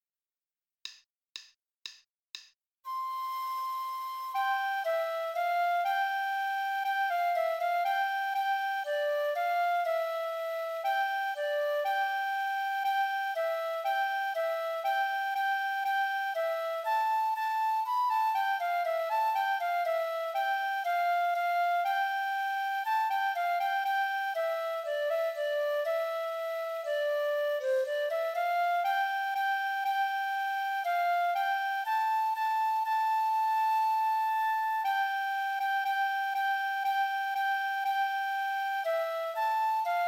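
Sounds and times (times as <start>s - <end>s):
second flute of a Spielmannszug marching band: 2.9s - 40.0s.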